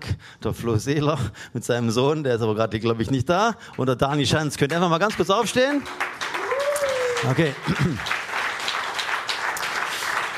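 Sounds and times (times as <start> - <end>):
speech: 0.2 - 6.3, 7.2 - 8.2
audience clapping: 3.8 - 10.3.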